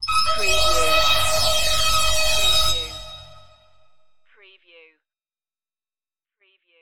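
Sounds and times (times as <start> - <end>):
laser strobe pulse: 0.0 - 3.8.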